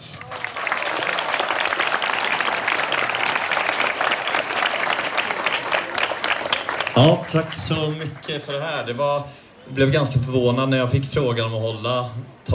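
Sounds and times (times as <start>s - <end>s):
audience applause: 0.0s - 9.0s
speech: 7.0s - 12.5s.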